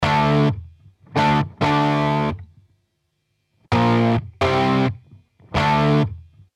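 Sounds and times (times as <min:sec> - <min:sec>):
electric guitar on tape: 0:00.0 - 0:02.5, 0:03.7 - 0:06.4.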